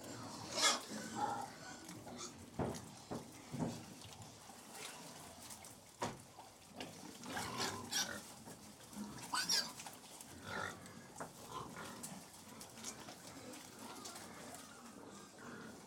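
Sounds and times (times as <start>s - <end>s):
hundred domestic pigs feeding, snuffling, chomping and grunting: 0.0s - 15.8s.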